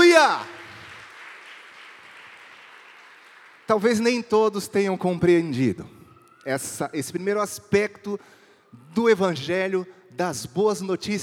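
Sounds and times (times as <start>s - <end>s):
congregation at a church service applauding: 0.0s - 5.4s
speech: 0.2s - 0.6s, 3.7s - 11.2s.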